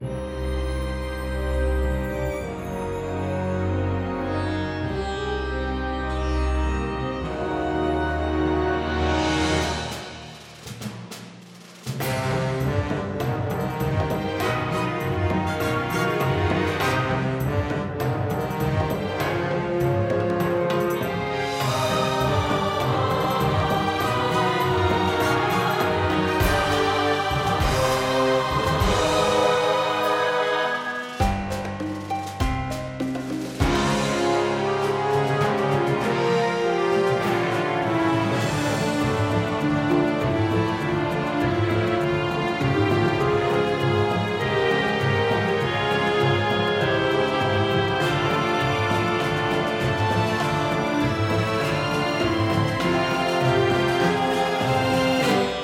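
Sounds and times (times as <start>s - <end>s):
forest background music: 0.0s - 55.6s.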